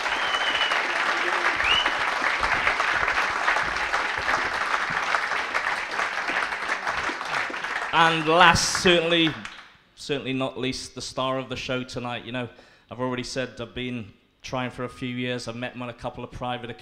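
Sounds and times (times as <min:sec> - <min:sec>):
audience round of applause: 0:00.0 - 0:09.7
speech: 0:08.0 - 0:09.4, 0:10.1 - 0:16.8.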